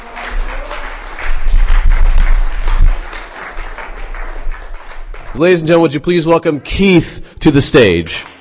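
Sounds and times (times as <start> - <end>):
audience applause for a performer at a poetry reading: 0.0 - 5.9
speech: 5.4 - 8.3.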